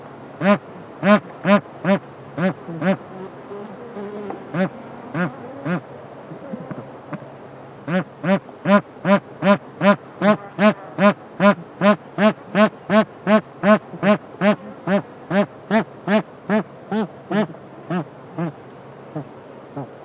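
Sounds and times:
bar-headed goose honking: 0:00.4 - 0:03.0, 0:04.5 - 0:05.8, 0:07.9 - 0:18.6.

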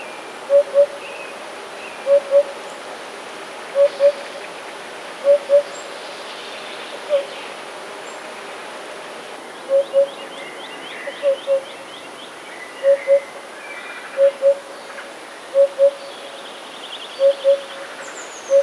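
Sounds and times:
Eurasian hoopoe hooting: 0:00.5 - 0:01.0, 0:02.0 - 0:02.6, 0:03.8 - 0:04.3, 0:05.2 - 0:05.8, 0:07.0 - 0:07.3, 0:09.7 - 0:10.3, 0:11.0 - 0:11.8, 0:12.8 - 0:13.3, 0:14.1 - 0:14.7, 0:15.5 - 0:16.1, 0:17.2 - 0:17.9.

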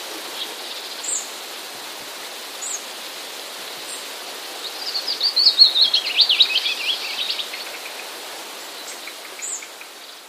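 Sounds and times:
steady hiss: 0:00.0 - 0:10.2
Willow Warbler song: 0:00.3 - 0:01.5, 0:02.5 - 0:02.9, 0:03.6 - 0:10.2.

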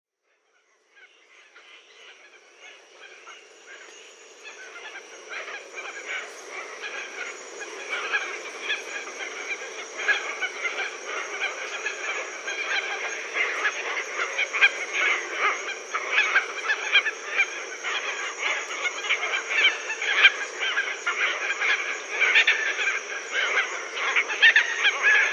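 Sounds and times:
Red-tailed tropicbird Phaethon rubricauda squawking: 0:00.6 - 0:25.3.

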